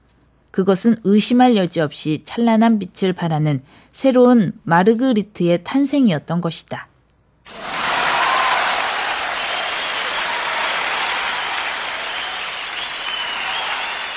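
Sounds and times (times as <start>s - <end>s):
speech: 0.6s - 6.9s
thunderous audience applause: 7.5s - 14.1s.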